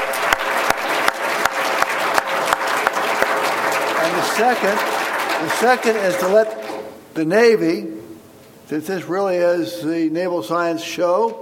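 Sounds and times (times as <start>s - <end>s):
audience applause: 0.0s - 6.9s
speech: 4.4s - 6.6s, 7.2s - 8.0s, 8.7s - 11.4s.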